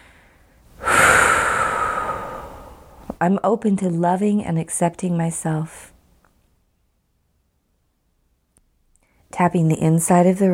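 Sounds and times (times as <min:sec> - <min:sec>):
deep breath during a wrist-tapping relaxation exercise: 0:00.0 - 0:03.2
speech: 0:03.2 - 0:05.9, 0:09.4 - 0:10.5.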